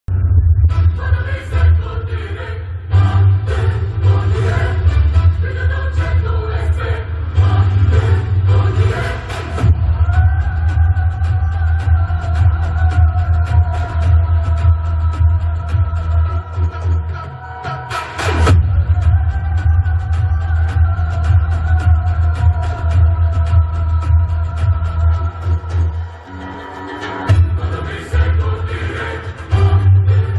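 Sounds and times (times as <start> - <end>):
climax background music ringtone: 0.7 - 30.3.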